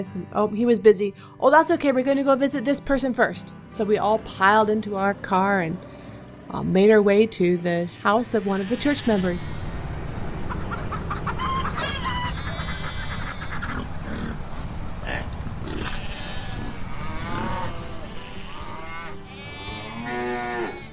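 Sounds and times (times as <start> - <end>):
speech: 0.0 - 5.9, 6.5 - 9.6
cattle mooing in low bellows: 7.9 - 20.9
chickens clucking and squawking: 8.3 - 19.3
rooster crowing: 8.5 - 14.5, 15.2 - 19.8.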